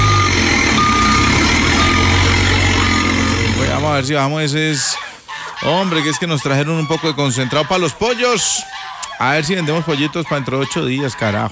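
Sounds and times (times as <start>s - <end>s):
truck reversing alarm beeping: 0.0s - 4.1s
truck engine rumbling while reversing: 0.0s - 4.2s
speech: 4.0s - 4.9s, 5.6s - 11.4s.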